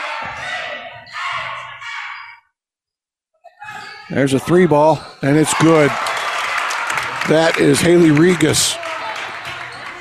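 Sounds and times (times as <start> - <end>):
spectators cheering and shouting at a women's basketball game: 0.0 - 2.3, 5.2 - 9.9
speech: 4.1 - 6.1, 7.2 - 8.8.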